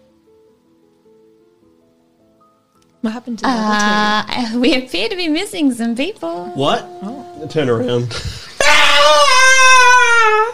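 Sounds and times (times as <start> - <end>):
speech: 3.0 - 8.5
female scream echoing through the building: 8.6 - 10.5.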